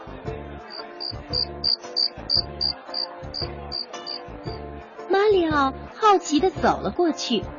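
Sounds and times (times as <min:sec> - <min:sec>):
cricket chirping: 0:00.7 - 0:04.2
speech: 0:05.5 - 0:07.5.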